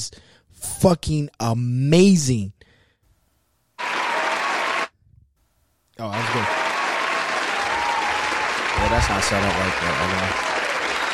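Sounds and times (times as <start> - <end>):
speech: 0.0 - 2.6, 6.0 - 6.6, 8.8 - 10.5
clapping applause: 3.8 - 4.9, 6.0 - 11.1.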